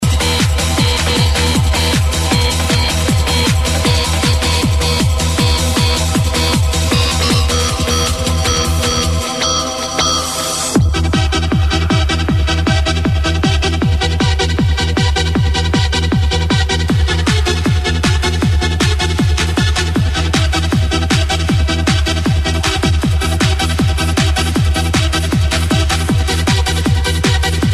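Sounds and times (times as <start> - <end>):
trance music: 0.0 - 27.7.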